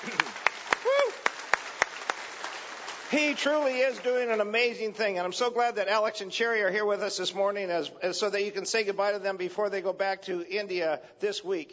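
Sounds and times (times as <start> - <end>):
audience applause: 0.0 - 4.4
speech: 3.1 - 11.7.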